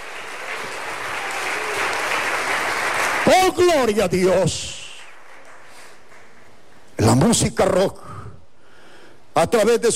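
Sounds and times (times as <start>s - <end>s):
applause: 0.0s - 6.8s
speech: 3.3s - 4.8s, 7.0s - 8.1s, 9.4s - 9.9s.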